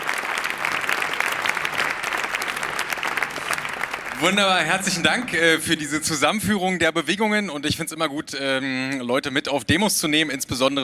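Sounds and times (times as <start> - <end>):
audience applause: 0.0 - 6.0
speech: 4.2 - 10.8.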